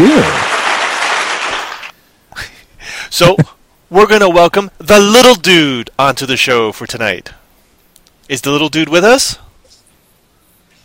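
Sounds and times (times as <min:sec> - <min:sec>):
applause sound effect: 0:00.0 - 0:02.0
speech: 0:03.2 - 0:07.4, 0:08.3 - 0:09.4.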